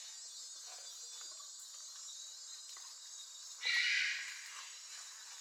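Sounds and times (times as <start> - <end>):
grey-winged trumpeter calls: 3.6 - 4.5.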